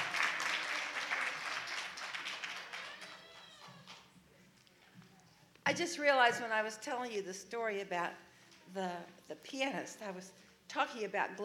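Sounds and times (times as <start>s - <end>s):
hands clapping: 0.0s - 4.2s
speech: 5.7s - 11.4s.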